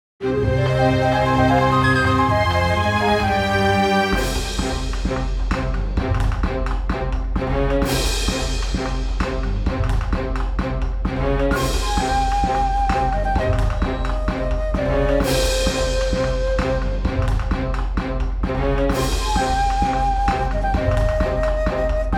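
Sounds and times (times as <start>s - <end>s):
background music: 0.2s - 22.1s.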